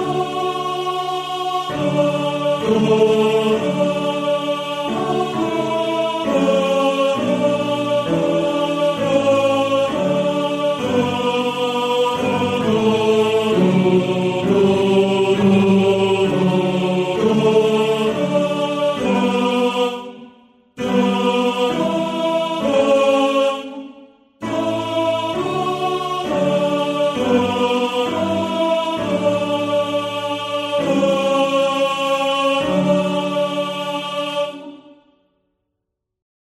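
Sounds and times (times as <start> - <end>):
tenor singing in a male choir: 0.0 - 35.2.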